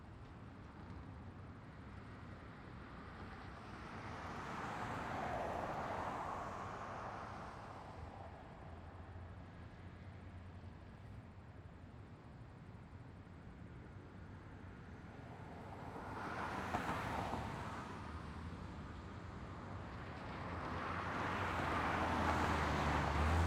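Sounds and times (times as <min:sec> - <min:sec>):
traffic ambience: 0:00.1 - 0:23.4.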